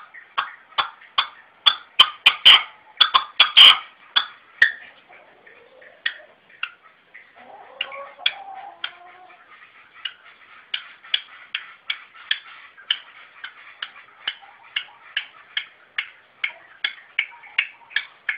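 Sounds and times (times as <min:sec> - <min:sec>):
red-legged partridge calling: 0:00.0 - 0:18.3.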